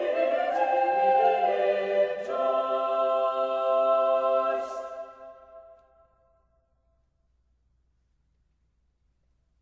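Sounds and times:
sacred song for voices and four viols: 0:00.0 - 0:06.9.

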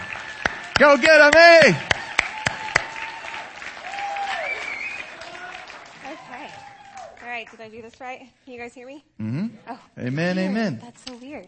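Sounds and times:
church congregation applauding to welcome its family pastor: 0:00.0 - 0:07.7
speech: 0:00.8 - 0:01.9, 0:07.5 - 0:11.4.

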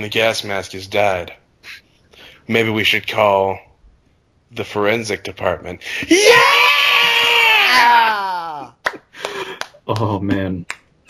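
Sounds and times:
speech: 0:00.0 - 0:01.8, 0:02.5 - 0:03.7, 0:04.5 - 0:06.6, 0:09.9 - 0:10.8
girls in passenger seats screaming and cheering: 0:06.1 - 0:08.7.

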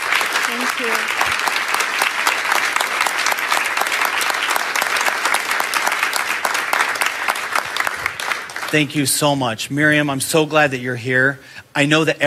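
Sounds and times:
audience applause: 0:00.0 - 0:09.2
speech: 0:00.5 - 0:01.5, 0:08.7 - 0:12.2.

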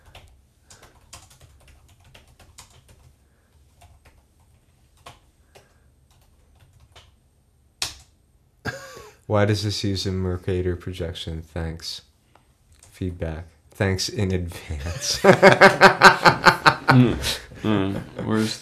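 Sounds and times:
typing on a computer keyboard while a feedback message is entered: 0:00.0 - 0:07.2, 0:07.8 - 0:08.1
speech: 0:09.3 - 0:12.1, 0:13.0 - 0:18.6
laughter: 0:14.8 - 0:18.6.

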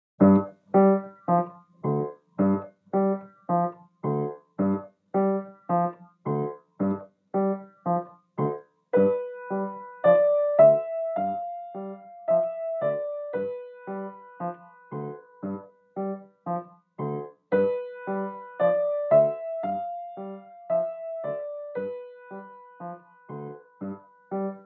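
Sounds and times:
happy clown piano music: 0:00.2 - 0:24.6.

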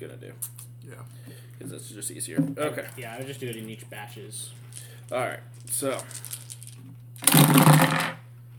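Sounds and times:
speech: 0:00.0 - 0:06.4
low steady hum: 0:00.0 - 0:08.5
dice rattling and clattering: 0:04.6 - 0:08.2.

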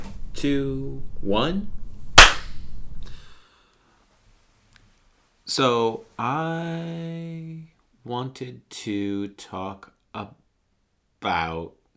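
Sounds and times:
speech: 0:00.4 - 0:01.8, 0:05.5 - 0:10.4, 0:11.2 - 0:11.8
single hand clap for sync: 0:02.2 - 0:02.6.

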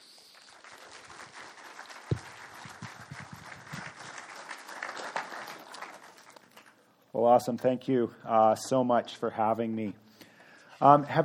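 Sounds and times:
audience applause welcoming a speaker at an event: 0:00.2 - 0:06.7
speech: 0:07.1 - 0:10.0, 0:10.8 - 0:11.2.

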